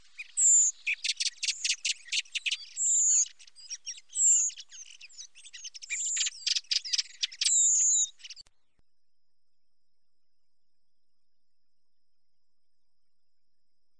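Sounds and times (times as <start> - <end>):
common blackbird ticks, chattering notes and high thin whistles: 0.0 - 8.5.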